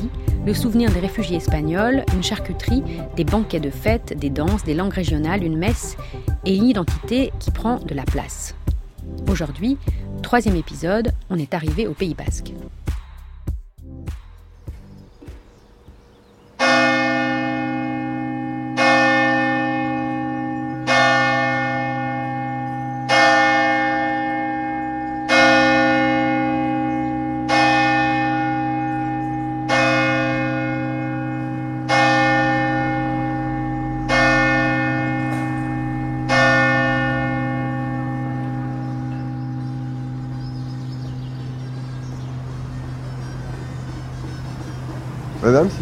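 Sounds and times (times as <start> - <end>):
speech: 0.0 - 8.6, 9.2 - 12.8
church bell in the French Basque Country tolling the hour: 16.6 - 44.0.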